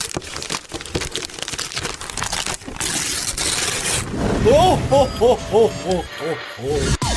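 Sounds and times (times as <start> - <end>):
gift package paper being unwrapped, radio sound effect: 0.0 - 4.1
laughter: 4.4 - 7.0
speech: 4.4 - 7.0.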